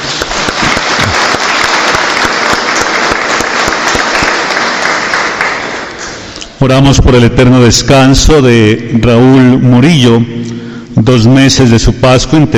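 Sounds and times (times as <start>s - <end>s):
audience applause for the fire brigade: 0.0s - 6.2s
speech: 6.6s - 12.5s.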